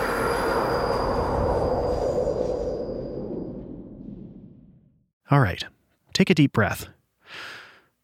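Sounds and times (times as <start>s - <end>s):
subway train approaching with roar of wheels on rails: 0.0s - 2.5s
thin high metallic squeal of subway train: 0.0s - 3.8s
speech: 5.3s - 7.6s.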